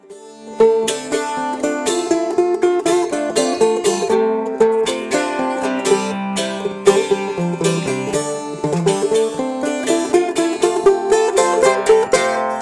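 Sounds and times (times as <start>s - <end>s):
mandola playing: 0.0s - 12.6s.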